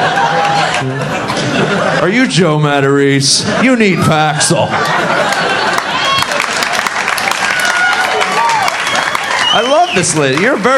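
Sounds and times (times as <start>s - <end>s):
audience clapping: 0.0s - 1.0s, 4.8s - 10.7s
crowd cheering: 0.0s - 2.1s, 3.6s - 10.7s
laughter: 0.0s - 7.0s
crowd chatter: 0.0s - 10.7s
speech: 2.0s - 6.1s, 9.5s - 10.7s.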